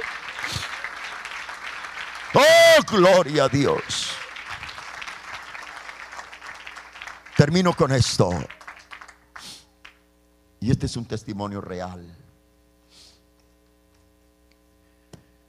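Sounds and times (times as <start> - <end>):
audience applause: 0.0 - 9.5
speech: 2.3 - 4.0, 7.4 - 8.6, 10.6 - 12.2.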